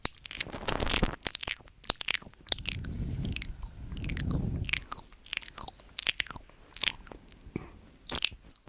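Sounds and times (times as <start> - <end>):
mouth sounds and ear eating: 0.1 - 8.5
heavy low rumbling burst: 2.4 - 5.6.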